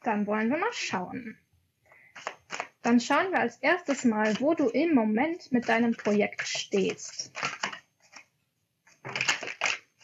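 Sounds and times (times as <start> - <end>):
speech: 0.0 - 1.4, 2.8 - 7.6
playing cards flipping during a shuffle: 2.2 - 2.8, 7.3 - 8.2, 9.0 - 10.0.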